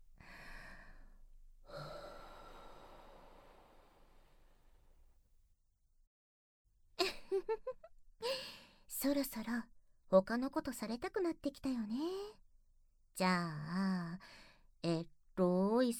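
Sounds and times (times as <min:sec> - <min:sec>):
warm breathing close to microphone: 0:00.2 - 0:05.0
speech: 0:09.0 - 0:12.4, 0:13.2 - 0:15.9.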